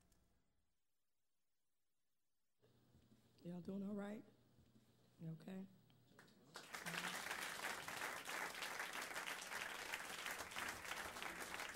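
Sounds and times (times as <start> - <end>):
speech: 3.4 - 4.4, 5.2 - 5.8
audience clapping: 6.2 - 11.7.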